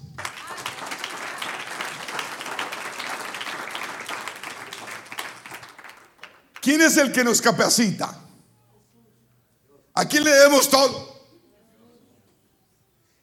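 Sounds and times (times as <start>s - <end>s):
audience applauding: 0.0s - 6.8s
speech: 6.6s - 8.2s, 10.0s - 11.1s.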